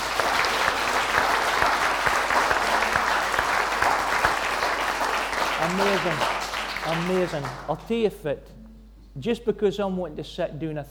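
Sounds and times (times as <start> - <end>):
audience applause: 0.0 - 7.8
speech: 5.8 - 8.6, 9.2 - 10.8.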